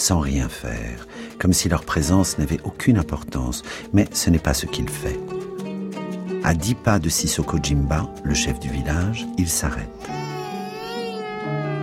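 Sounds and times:
speech: 0.0s - 5.4s, 6.4s - 10.3s
newborn baby crying: 9.7s - 11.8s.

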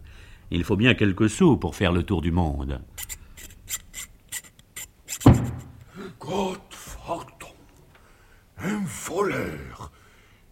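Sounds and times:
speech: 0.5s - 3.2s, 6.3s - 6.6s
metal file rasping: 3.0s - 5.8s.

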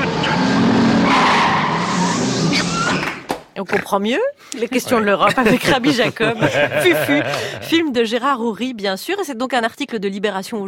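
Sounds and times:
car engine roar while overtaking: 0.0s - 3.1s
car tyres screeching: 0.0s - 4.0s
speech: 3.6s - 10.6s
laughter: 4.8s - 8.0s.

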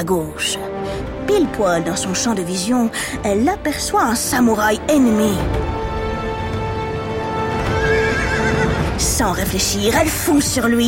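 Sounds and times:
speech: 0.0s - 5.8s, 9.0s - 10.8s
galloping hooves: 5.9s - 9.0s
horse whinnying: 7.4s - 8.9s.

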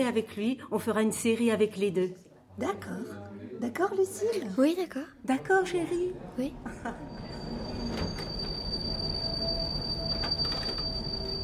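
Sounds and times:
speech: 0.0s - 7.4s
metro train running: 6.2s - 11.4s
metro train wheels squealing: 7.0s - 11.4s.

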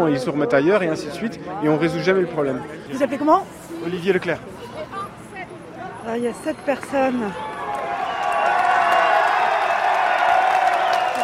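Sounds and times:
speech: 0.0s - 4.7s, 6.0s - 7.5s
crowd applauding: 7.3s - 11.2s.

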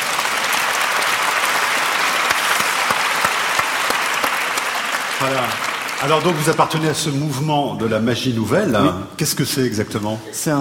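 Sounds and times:
audience applause: 0.0s - 7.4s
speech: 5.2s - 10.5s.

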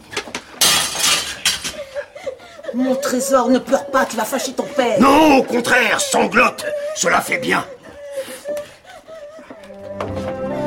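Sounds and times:
window pane being smashed: 0.6s - 1.7s
speech: 2.7s - 7.8s.

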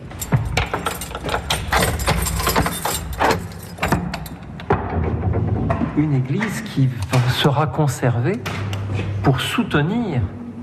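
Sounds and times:
keys jangling: 0.0s - 4.6s
old church door lock clanking: 0.0s - 5.5s
speech: 6.0s - 10.4s.

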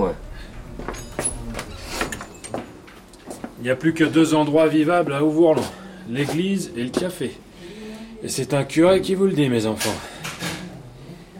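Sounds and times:
door closing in a village café: 0.0s - 3.4s
speech: 3.6s - 7.4s, 8.2s - 10.1s.

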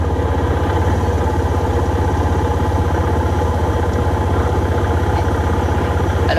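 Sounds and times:
quad bike engine idling: 0.0s - 6.3s.

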